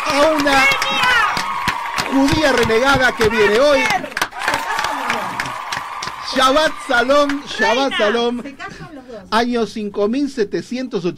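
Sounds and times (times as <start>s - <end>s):
audience applause: 0.0s - 8.8s
speech: 2.2s - 4.1s, 6.3s - 11.1s.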